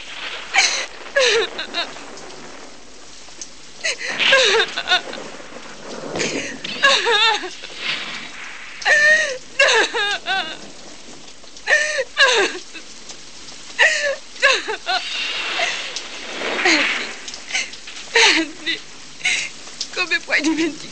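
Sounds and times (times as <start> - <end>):
heavy rain of a thunderstorm: 0.0 - 20.9
person sobbing and crying: 0.6 - 1.8, 3.8 - 5.2, 6.2 - 7.7, 8.9 - 10.7, 11.7 - 12.8, 13.8 - 15.8, 17.5 - 19.6
speech: 1.3 - 2.0.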